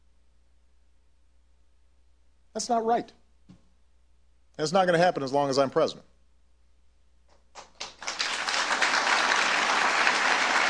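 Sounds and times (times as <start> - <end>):
speech: 2.6 - 3.6, 4.6 - 6.1
crowd applause: 7.8 - 10.6.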